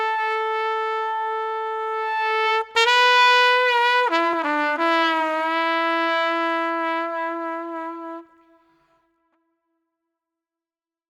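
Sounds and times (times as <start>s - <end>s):
somber street trumpet playing: 0.0s - 8.6s.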